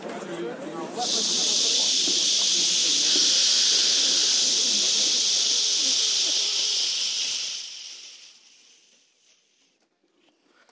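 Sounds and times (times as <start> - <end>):
murmured chatter: 0.0 - 8.2
group of people imitating wind: 1.0 - 8.9.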